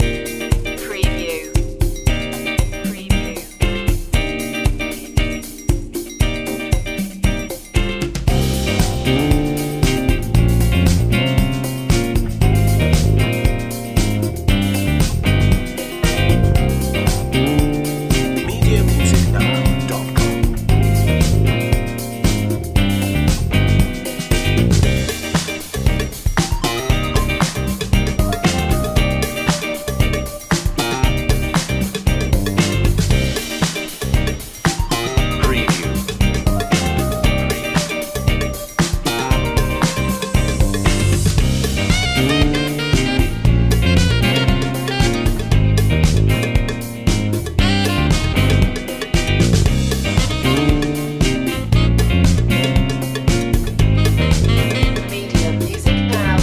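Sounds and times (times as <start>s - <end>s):
soul fusion music: 0.0s - 56.4s.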